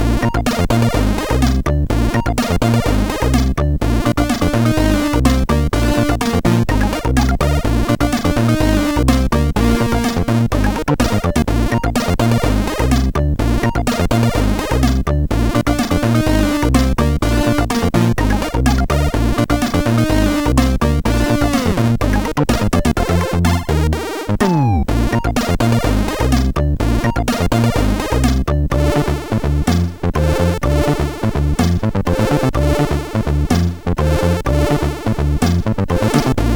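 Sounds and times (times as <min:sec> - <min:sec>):
MOS6581R4 SID chip rumble: 0:00.0 - 0:36.5.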